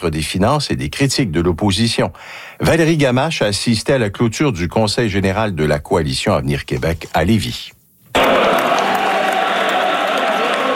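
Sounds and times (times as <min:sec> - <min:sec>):
speech: 0:00.0 - 0:08.5
Coalition Avenir Québec supporters clapping and cheering in Lévis: 0:08.2 - 0:10.7.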